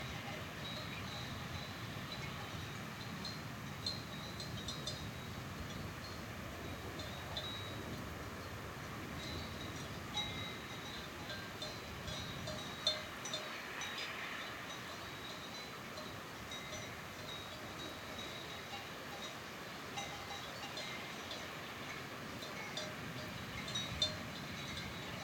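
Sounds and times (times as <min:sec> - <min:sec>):
distant sheep herd bells in summer mountains: 0:00.0 - 0:25.2
mountain wind at altitude: 0:00.0 - 0:25.2.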